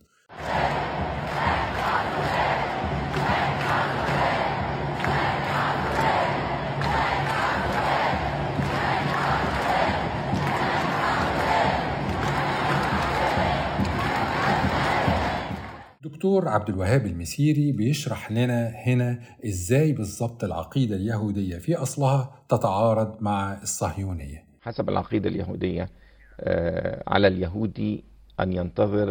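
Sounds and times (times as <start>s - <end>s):
protest crowd chanting in train station: 0.0s - 16.0s
speech: 16.2s - 29.0s.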